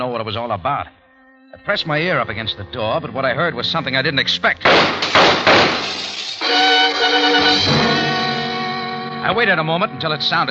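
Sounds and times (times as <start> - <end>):
speech: 0.0 - 8.1, 9.2 - 10.4
gunshots: 4.6 - 6.4
window glass shattering: 4.7 - 7.9.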